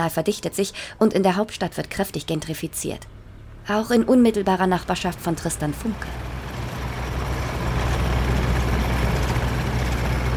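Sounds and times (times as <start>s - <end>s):
speech: 0.0s - 6.3s
construction machinery digging up the ground: 4.9s - 10.3s.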